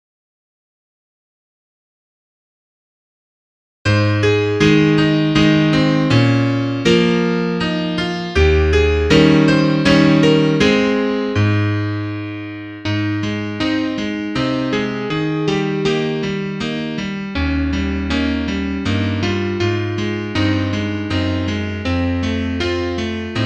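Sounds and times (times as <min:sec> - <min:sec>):
piano: 0:03.9 - 0:23.4.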